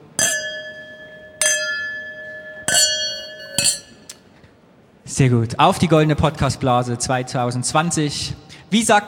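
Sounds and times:
champagne glasses clinking in a toast: 0:00.0 - 0:04.2
speech: 0:05.2 - 0:09.0.

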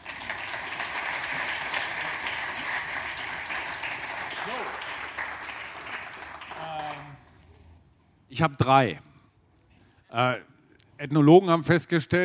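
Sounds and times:
audience applause: 0:00.0 - 0:07.2
speech: 0:08.4 - 0:09.1, 0:10.1 - 0:12.2.

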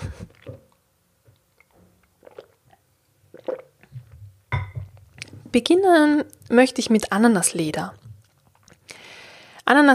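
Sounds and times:
person sipping and swallowing water: 0:00.0 - 0:04.2, 0:08.0 - 0:09.0
glass clink: 0:04.5 - 0:04.9
speech: 0:05.5 - 0:08.0, 0:09.7 - 0:09.9.

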